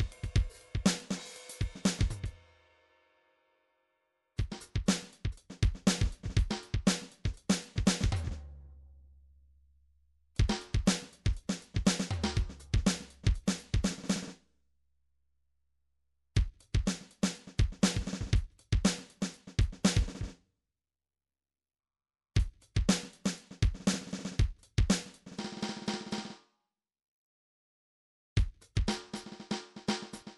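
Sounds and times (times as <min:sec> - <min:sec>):
MIDI drum pattern: 0:00.0 - 0:02.4, 0:04.4 - 0:08.4, 0:10.4 - 0:14.4, 0:16.4 - 0:20.3, 0:22.4 - 0:26.3, 0:28.4 - 0:30.3.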